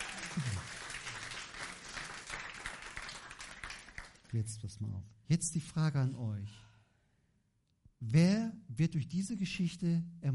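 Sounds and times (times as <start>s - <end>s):
audience applause: 0.0s - 4.3s
speech: 4.3s - 6.7s, 8.0s - 10.3s.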